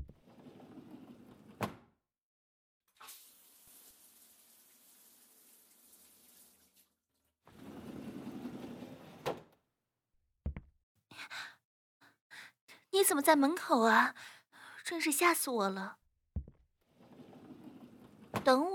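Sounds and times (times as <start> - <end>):
shower water running in a quiet bathroom: 3.0 - 7.0
speech: 13.0 - 16.0, 18.4 - 18.7.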